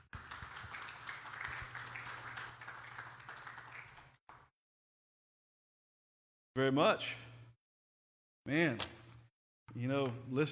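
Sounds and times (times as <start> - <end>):
audience applause: 0.0 - 4.4
speech: 6.6 - 7.3, 8.5 - 9.0, 9.8 - 10.5.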